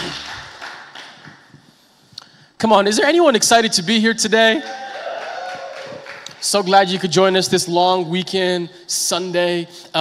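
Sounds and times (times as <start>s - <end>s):
audience clapping hands: 0.0s - 1.6s, 4.6s - 7.3s
speech: 2.6s - 4.8s, 6.5s - 9.9s.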